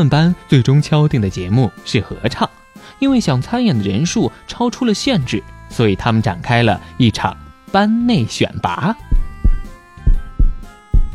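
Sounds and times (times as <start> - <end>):
speech: 0.0 - 9.1
heartbeat: 9.1 - 11.1.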